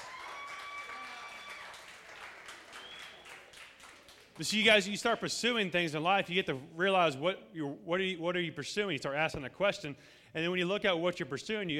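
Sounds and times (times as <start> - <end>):
audience applause: 0.0 - 4.5
speech: 4.4 - 11.7.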